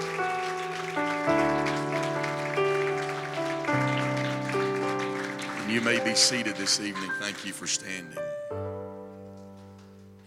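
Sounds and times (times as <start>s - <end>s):
crowd clapping in praise: 0.0s - 8.2s
sustained organ-like chords: 0.0s - 10.2s
speech: 5.8s - 8.5s.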